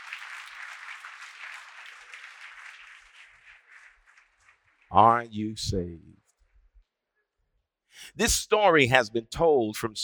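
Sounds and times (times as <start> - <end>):
audience clapping: 0.0 - 5.3
speech: 4.9 - 6.2, 8.2 - 10.0.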